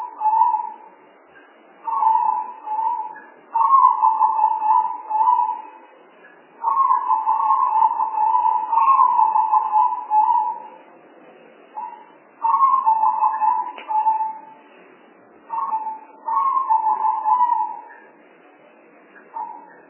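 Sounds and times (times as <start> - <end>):
spotted dove cooing: 0.0 - 0.8, 1.9 - 5.8, 6.6 - 10.7, 11.8 - 14.6, 15.5 - 18.1.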